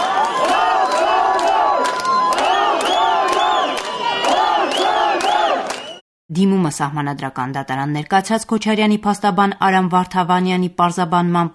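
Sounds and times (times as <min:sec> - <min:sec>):
crowd at a court shouting and chanting: 0:00.0 - 0:06.0
rhythmic clapping: 0:00.0 - 0:06.0
speech: 0:06.4 - 0:11.5.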